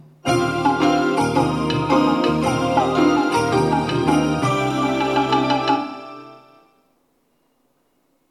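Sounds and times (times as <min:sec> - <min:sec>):
train departure signal melody from a double-sided box unit: 0:00.2 - 0:06.9.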